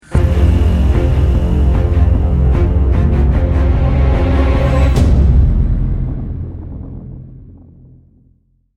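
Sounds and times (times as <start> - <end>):
lost round music: 0.0 - 6.7.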